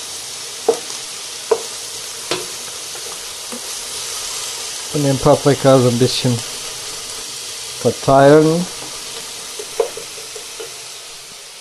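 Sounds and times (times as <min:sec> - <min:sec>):
onions and meat sizzling in a frying pan: 0:00.0 - 0:11.5
stirring noises: 0:02.3 - 0:11.2
speech: 0:04.9 - 0:06.5, 0:07.8 - 0:08.7.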